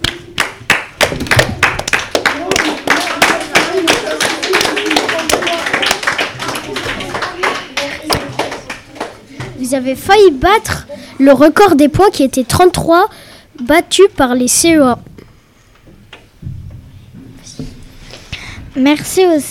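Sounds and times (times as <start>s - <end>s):
people applauding: 0.0s - 9.4s
speech: 9.7s - 15.1s, 18.8s - 19.4s.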